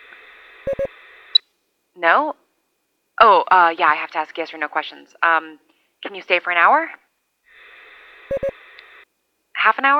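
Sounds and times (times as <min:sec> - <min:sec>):
electronic beeps: 0:00.7 - 0:00.9, 0:08.3 - 0:08.6
speech: 0:02.0 - 0:02.4, 0:03.2 - 0:07.0, 0:08.3 - 0:08.5, 0:09.6 - 0:09.9.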